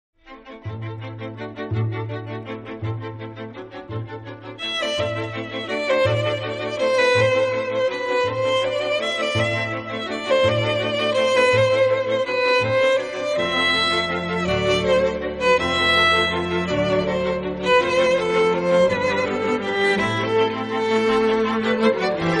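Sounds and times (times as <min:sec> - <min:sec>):
violin concerto excerpt: 0:00.3 - 0:22.3.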